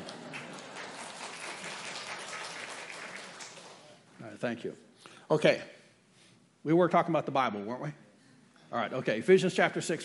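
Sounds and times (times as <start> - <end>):
audience applause: 0.0 - 3.9
speech: 4.4 - 5.8, 6.6 - 8.0, 8.7 - 10.0.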